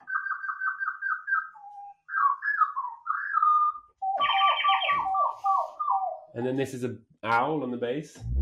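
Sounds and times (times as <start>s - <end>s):
robin singing: 0.0s - 6.4s
speech: 6.4s - 8.3s.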